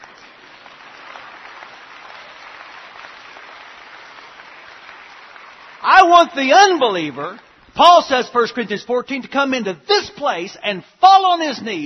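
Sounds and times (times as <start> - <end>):
audience clapping: 0.0 - 8.0
speech: 5.8 - 11.8.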